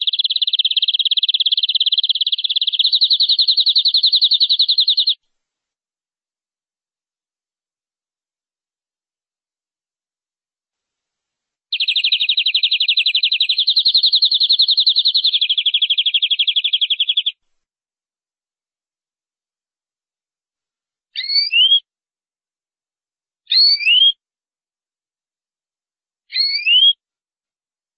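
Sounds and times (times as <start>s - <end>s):
canary rolling trills: 0.0s - 5.2s, 11.7s - 17.4s, 21.2s - 21.8s, 26.3s - 27.0s.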